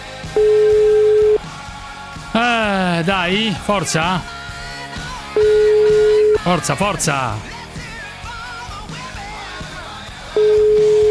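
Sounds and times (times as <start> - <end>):
telephone ringing tone on an unanswered call: 0.3 - 1.4, 5.4 - 6.7, 10.4 - 11.0
speech: 3.0 - 4.4, 6.5 - 7.5.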